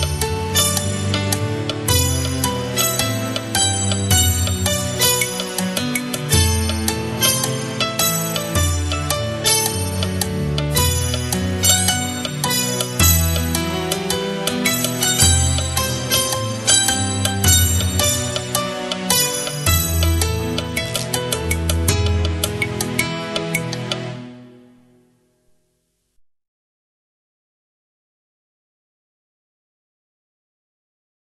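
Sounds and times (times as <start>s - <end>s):
light comedic background music: 0.0s - 24.8s.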